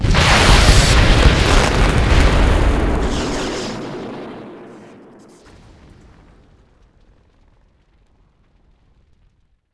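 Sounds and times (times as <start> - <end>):
ICBM destroyed sound effect: 0.0 - 7.1.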